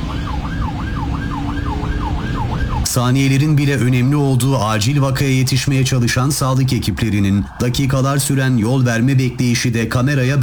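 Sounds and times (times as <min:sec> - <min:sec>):
ambulance siren wailing: 0:00.0 - 0:10.4
road and engine rumble: 0:00.0 - 0:10.4
speech: 0:02.9 - 0:10.4.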